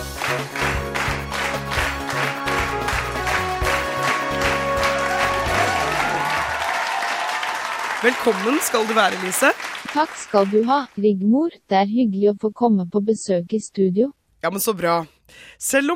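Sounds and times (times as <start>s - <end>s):
studio audience applause: 0.0s - 10.9s
speech: 8.0s - 15.9s.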